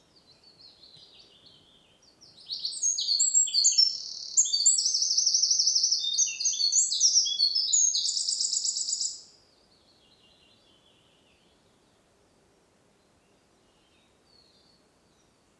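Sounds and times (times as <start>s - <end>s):
Eurasian wren singing: 0.4s - 9.3s.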